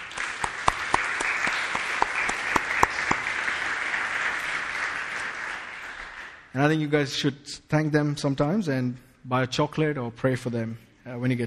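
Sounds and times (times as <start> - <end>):
audience applause: 0.0 - 6.5
speech: 6.6 - 11.4.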